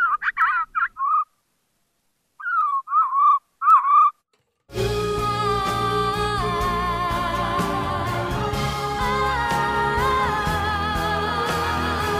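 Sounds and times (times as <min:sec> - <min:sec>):
Northern mockingbird song: 0:00.0 - 0:01.3, 0:02.4 - 0:04.2
music: 0:04.7 - 0:12.1.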